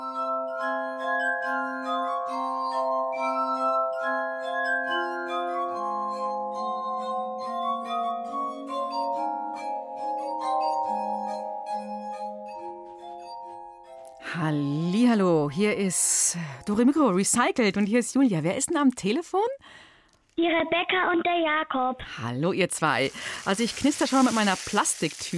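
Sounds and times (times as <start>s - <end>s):
glass music from rubbed glass: 0.0s - 15.7s
speech: 14.4s - 19.8s, 20.4s - 25.3s.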